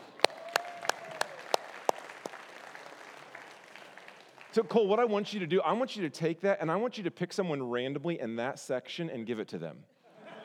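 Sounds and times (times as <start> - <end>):
audience clapping: 0.0 - 4.9
speech: 4.5 - 9.9
laughter: 10.1 - 10.4.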